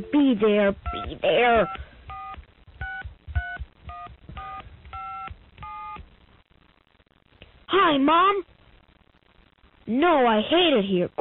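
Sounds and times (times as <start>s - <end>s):
speech: 0.0s - 1.9s, 7.7s - 8.5s, 9.9s - 11.2s
telephone dialing tones: 0.9s - 6.0s.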